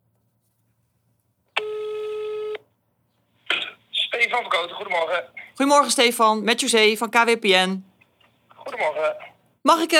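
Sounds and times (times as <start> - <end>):
telephone ringing tone: 1.6 - 2.6
speech: 4.3 - 7.9, 8.8 - 9.9.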